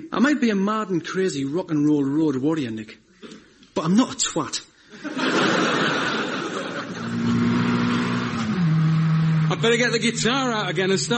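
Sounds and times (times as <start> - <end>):
speech: 0.0 - 3.0, 3.8 - 5.4, 9.6 - 11.1
laughter: 4.9 - 7.4
car engine accelerating: 6.8 - 11.1.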